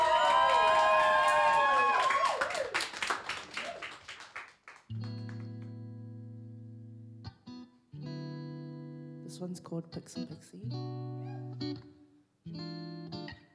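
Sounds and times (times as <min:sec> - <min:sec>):
audience applauding and cheering for performers at a live show: 0:00.0 - 0:05.7
speech: 0:09.4 - 0:12.7.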